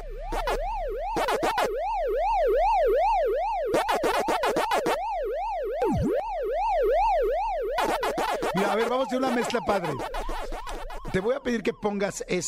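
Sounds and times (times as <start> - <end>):
Pac-Man arcade game warbling electronic siren tone: 0.0 - 12.4
Pac-Man arcade game buzzy chomping blips: 0.3 - 1.7, 3.7 - 5.0, 5.8 - 6.2, 7.8 - 11.6
speech: 8.9 - 10.3, 11.1 - 12.4.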